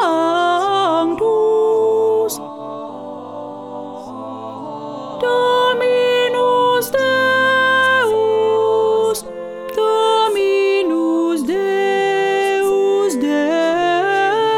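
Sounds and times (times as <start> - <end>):
first alto voice singing a mass: 0.0 - 14.5.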